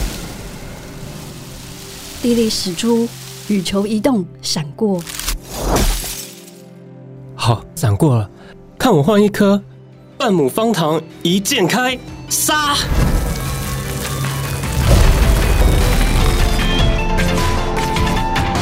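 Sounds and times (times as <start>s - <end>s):
lightning attack sound effect: 0.0s - 3.4s, 12.9s - 18.5s
speech: 2.2s - 5.2s, 7.5s - 13.2s.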